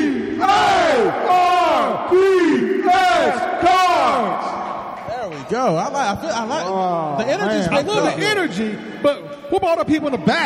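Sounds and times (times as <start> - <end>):
crowd shouting in rhythmic bursts: 0.0 - 5.0
speech: 5.5 - 10.4.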